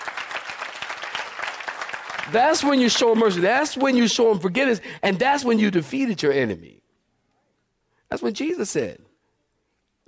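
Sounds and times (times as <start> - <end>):
crowd clapping: 0.0 - 4.4
speech: 2.3 - 6.8, 8.1 - 9.1.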